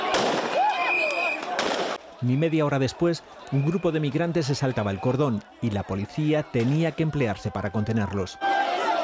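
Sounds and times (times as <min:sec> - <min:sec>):
gunshots fired into the air: 0:00.1 - 0:00.6, 0:01.4 - 0:02.0
speech: 0:02.2 - 0:08.9.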